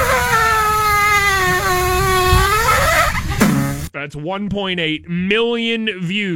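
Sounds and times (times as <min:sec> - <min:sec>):
waffle maker making squeaky toot noises: 0:00.0 - 0:03.4
speech: 0:04.1 - 0:06.3.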